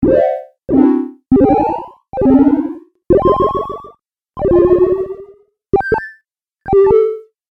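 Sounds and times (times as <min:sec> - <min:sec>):
lo-fi video game sound effects: 0:00.0 - 0:07.2.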